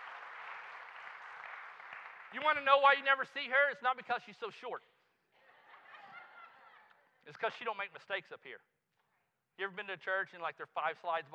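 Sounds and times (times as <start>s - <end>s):
church congregation applauding a volunteer: 0.0s - 3.0s
speech: 2.3s - 4.9s, 7.2s - 8.7s, 9.6s - 11.3s
laughter: 5.4s - 7.2s.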